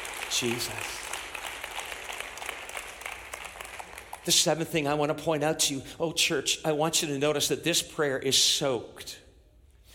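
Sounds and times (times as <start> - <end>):
audience clapping in praise: 0.0 - 5.0
speech: 0.3 - 1.1, 4.2 - 9.2.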